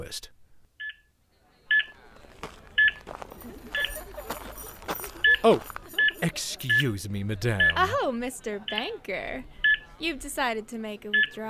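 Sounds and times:
speech: 0.0 - 0.4, 5.4 - 11.4
laughter: 1.3 - 9.5
electronic beeping: 2.8 - 3.0, 3.7 - 4.0, 5.2 - 8.0, 9.6 - 9.9, 11.1 - 11.4.

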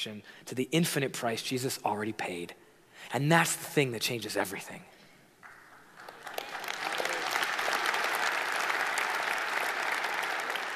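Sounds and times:
speech: 0.0 - 4.9
audience clapping: 5.4 - 10.7.

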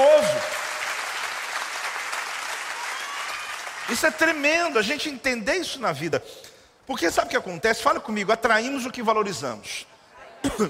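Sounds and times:
audience applause: 0.0 - 4.4
speech: 3.9 - 10.6.

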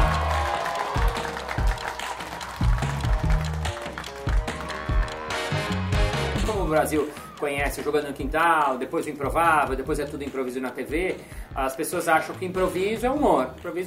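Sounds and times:
group applauding: 0.0 - 6.4
speech: 6.7 - 13.8.

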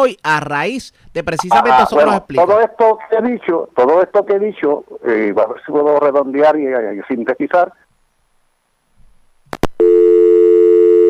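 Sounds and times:
speech: 0.0 - 7.9
telephone busy tone after dropped call: 9.8 - 11.0.

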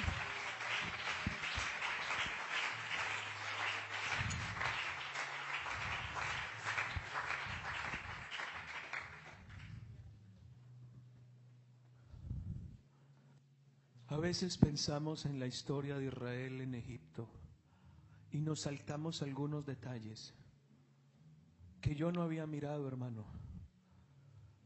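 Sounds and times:
audience applause: 0.0 - 9.7
speech: 14.2 - 17.4, 18.5 - 20.4, 21.8 - 23.4.

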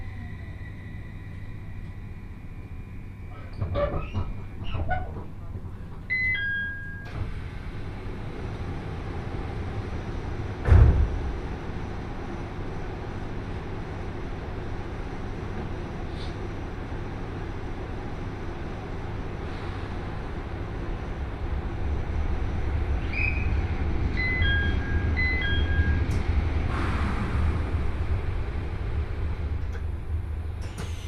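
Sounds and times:
Joban Line train ride rumble from Sendai to Hamayoshida: 0.0 - 6.2, 7.0 - 31.0.

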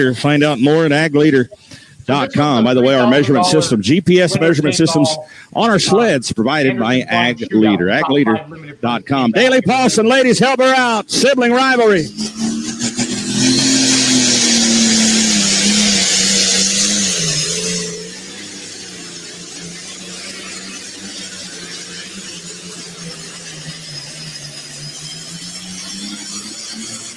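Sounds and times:
speech: 0.0 - 12.9
John Deere pulling tractor engine roaring: 0.0 - 27.1.

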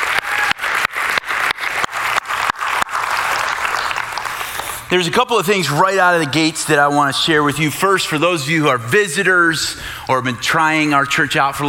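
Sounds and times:
audience applause: 0.0 - 4.9
speech: 4.9 - 11.6.

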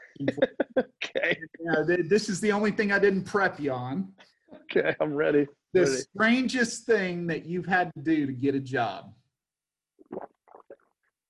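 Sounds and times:
laughter: 0.1 - 1.9
speech: 0.2 - 9.2
person gulping water: 10.0 - 11.0.

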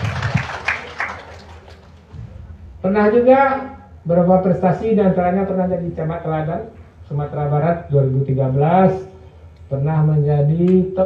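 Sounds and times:
audience applause for an introduced guest at a formal event: 0.0 - 2.1
speech: 2.8 - 9.1, 9.7 - 11.0.

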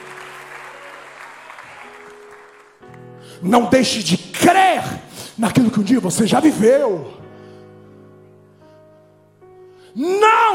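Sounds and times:
audience applauding: 0.0 - 3.1
speech: 3.4 - 7.2.

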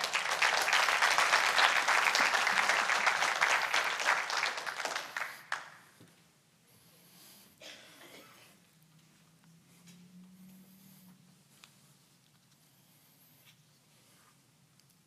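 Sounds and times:
audience clapping: 0.0 - 5.9.

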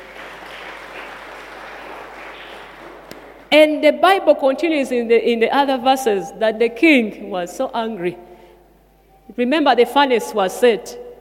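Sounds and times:
audience clapping: 0.0 - 3.5
speech: 3.5 - 8.3, 9.3 - 11.0.

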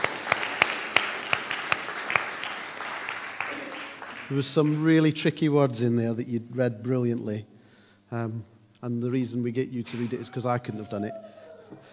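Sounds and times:
round of applause: 0.0 - 4.8
speech: 4.3 - 11.9
laughter: 9.9 - 11.9.

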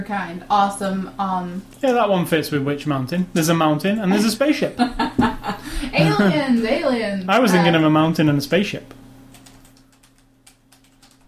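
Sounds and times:
speech: 0.0 - 9.0
low steady hum: 0.0 - 11.2
laughter: 4.1 - 6.8
typing on a computer keyboard: 9.3 - 11.2.

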